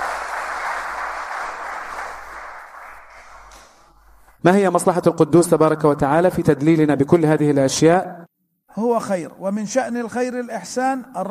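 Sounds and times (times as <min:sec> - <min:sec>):
crowd applauding: 0:00.0 - 0:03.8
speech: 0:04.4 - 0:11.2.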